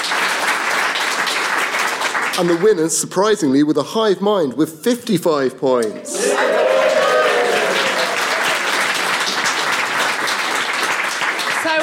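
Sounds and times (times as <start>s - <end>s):
audience applause for quiz winners: 0.0s - 2.8s, 6.0s - 11.8s
speech: 2.4s - 6.8s.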